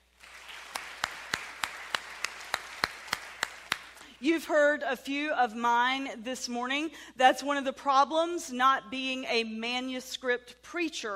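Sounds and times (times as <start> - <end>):
scattered applause: 0.0 - 4.0
audience unison clapping: 0.0 - 4.1
speech: 4.2 - 11.1.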